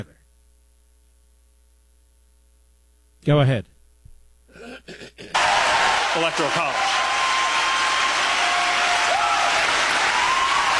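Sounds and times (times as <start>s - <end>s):
speech: 3.2s - 3.7s, 6.2s - 7.1s
audience clapping: 5.3s - 10.7s.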